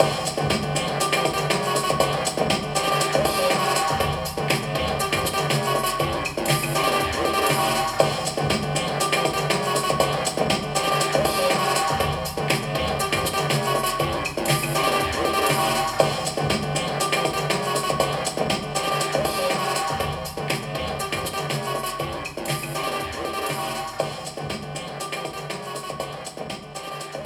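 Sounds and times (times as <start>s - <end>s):
electro music: 0.0s - 27.2s.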